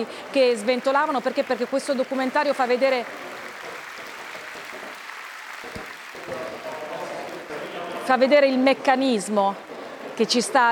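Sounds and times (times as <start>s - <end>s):
speech: 0.0s - 3.4s, 8.1s - 10.7s
large audience applause: 0.0s - 8.5s.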